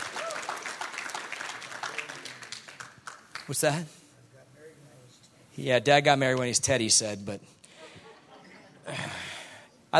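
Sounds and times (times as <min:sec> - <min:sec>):
audience clapping: 0:00.0 - 0:03.9
speech: 0:03.5 - 0:04.0, 0:05.6 - 0:07.5.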